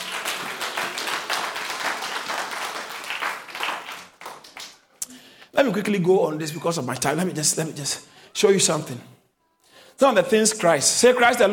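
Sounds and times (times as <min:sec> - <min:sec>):
audience clapping: 0:00.0 - 0:05.0
speech: 0:05.6 - 0:09.1, 0:10.0 - 0:11.5.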